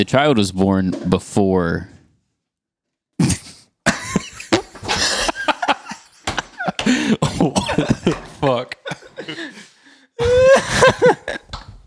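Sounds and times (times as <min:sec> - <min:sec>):
speech: 0:00.0 - 0:01.9, 0:07.1 - 0:09.6
fart into the microphone: 0:03.2 - 0:03.7
laughter: 0:03.4 - 0:11.7.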